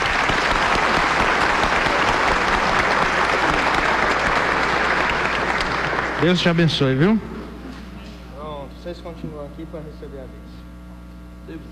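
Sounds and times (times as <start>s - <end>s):
audience applause: 0.0s - 7.2s
speech: 6.2s - 7.3s, 8.9s - 10.6s, 11.5s - 11.6s.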